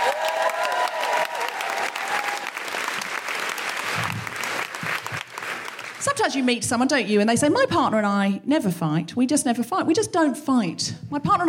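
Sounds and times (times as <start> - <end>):
audience applause at a live show in Brighton welcoming the host: 0.0 - 6.4
speech: 6.1 - 11.4.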